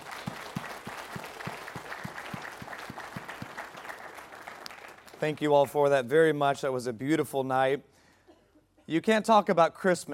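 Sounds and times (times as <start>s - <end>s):
crowd applauding: 0.0s - 5.8s
rhythmic clapping: 0.0s - 5.9s
speech: 5.2s - 7.9s, 8.9s - 10.1s.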